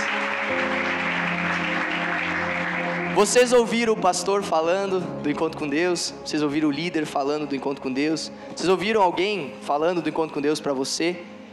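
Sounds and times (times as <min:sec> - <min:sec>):
audience applause: 0:00.0 - 0:03.9
speech: 0:03.2 - 0:11.3.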